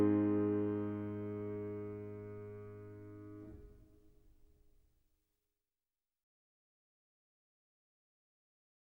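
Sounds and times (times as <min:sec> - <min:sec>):
prelude in A-flat major: 0:00.0 - 0:03.8.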